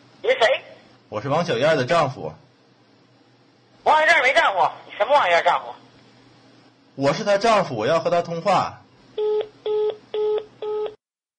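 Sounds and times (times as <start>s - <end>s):
speech: 1.1s - 2.4s, 3.8s - 5.8s, 7.0s - 8.8s
telephone dialing tones: 9.2s - 11.0s.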